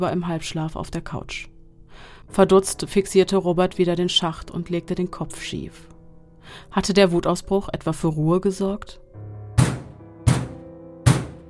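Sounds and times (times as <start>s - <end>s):
speech: 0.0s - 5.9s, 6.5s - 9.3s
heavy knocking against a wall: 9.6s - 11.4s.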